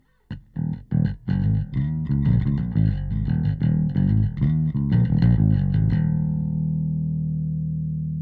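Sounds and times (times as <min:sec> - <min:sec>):
bass: 0:00.0 - 0:08.2.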